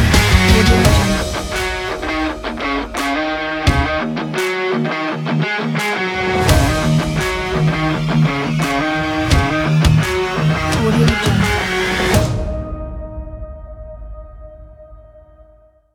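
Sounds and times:
hard rock trailer intro music: 0.0s - 12.7s.

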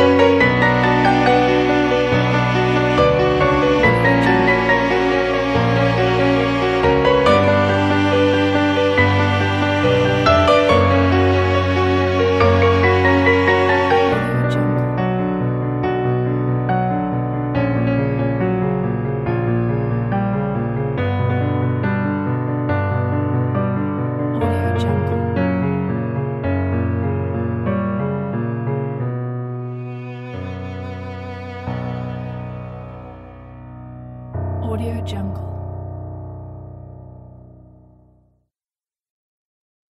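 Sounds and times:
violin: 0.0s - 15.0s, 29.4s - 34.2s
piano: 0.0s - 38.5s.

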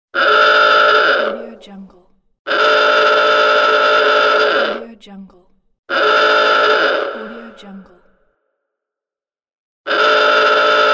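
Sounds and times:
buzzer: 0.2s - 1.4s, 2.5s - 4.8s, 5.9s - 7.2s, 9.9s - 10.9s.

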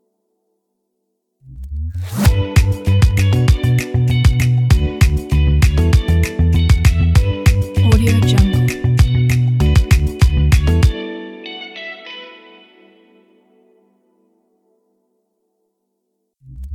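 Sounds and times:
background guitar: 2.2s - 15.2s.

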